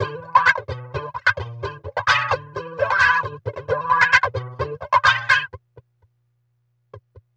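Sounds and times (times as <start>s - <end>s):
bizarre guitar skank with weird wah effect: 0.0s - 5.6s.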